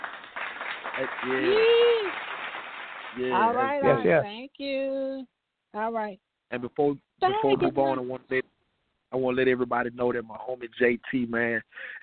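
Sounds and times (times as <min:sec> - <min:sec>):
clapping: 0:00.0 - 0:03.6
speech: 0:01.0 - 0:02.3, 0:03.1 - 0:08.5, 0:09.1 - 0:12.0.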